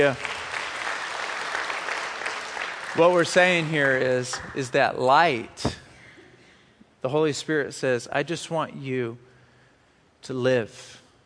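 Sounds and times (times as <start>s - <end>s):
speech: 0.0s - 0.2s, 3.0s - 5.8s, 7.0s - 9.3s, 10.2s - 11.0s
crowd clapping: 0.0s - 4.8s.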